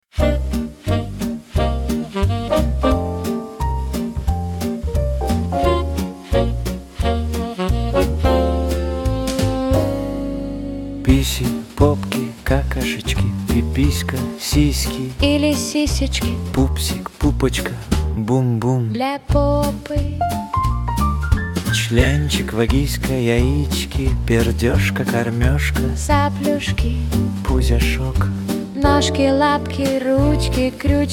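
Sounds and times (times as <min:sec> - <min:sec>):
cool jazz: 0:00.1 - 0:18.4, 0:19.3 - 0:31.1.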